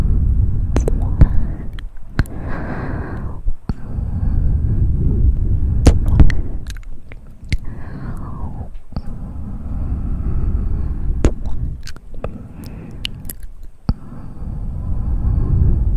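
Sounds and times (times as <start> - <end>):
mouth sounds: 0.0 - 14.8
sharp mouth clicks and smacks: 0.7 - 3.9, 5.8 - 9.2, 11.2 - 14.0.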